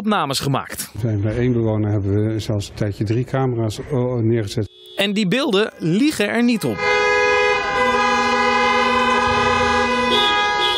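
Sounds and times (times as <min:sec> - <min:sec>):
speech: 0:00.0 - 0:07.0
car horns honking at night: 0:04.5 - 0:10.7.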